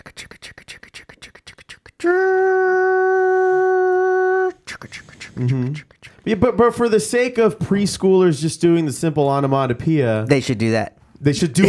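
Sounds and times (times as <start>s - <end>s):
voice imitating a passing train hoot: 2.0s - 5.9s
person talking quickly: 2.0s - 11.6s
speech: 5.4s - 11.6s.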